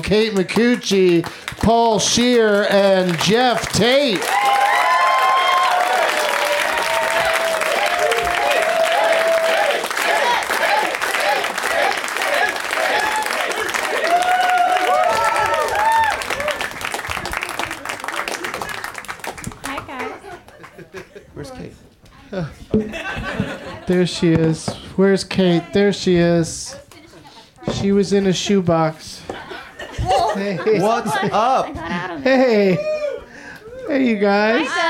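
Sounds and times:
speech: 0:00.0 - 0:04.6, 0:23.9 - 0:26.8, 0:27.8 - 0:29.0, 0:30.4 - 0:32.9, 0:34.0 - 0:34.8
studio audience applause at a live comedy show in Los Angeles: 0:00.0 - 0:20.8
studio audience laughter: 0:22.8 - 0:24.1, 0:29.4 - 0:32.8.

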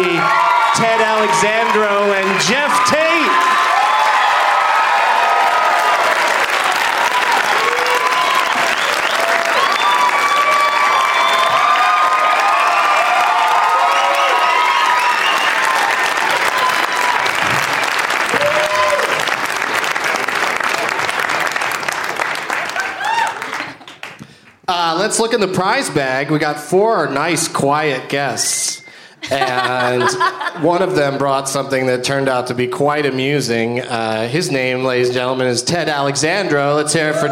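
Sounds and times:
audience applauding at a festival show: 0:00.0 - 0:24.7
speech: 0:00.8 - 0:03.4, 0:25.0 - 0:28.6, 0:29.3 - 0:37.3
laughter: 0:29.2 - 0:31.2.

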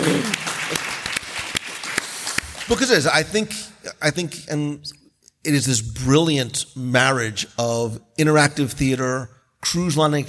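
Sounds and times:
audience round of applause: 0:00.0 - 0:02.8
speech: 0:02.7 - 0:10.2.

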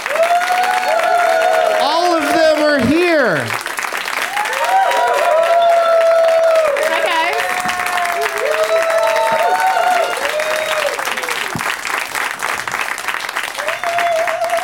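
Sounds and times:
people whooping and calling out: 0:00.0 - 0:03.4, 0:04.3 - 0:11.6, 0:13.6 - 0:14.6
small studio audience applauding guests: 0:00.0 - 0:14.6.

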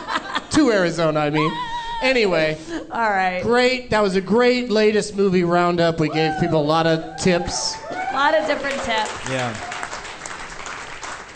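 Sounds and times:
speech: 0:00.6 - 0:09.7
audience applause: 0:07.8 - 0:11.3.

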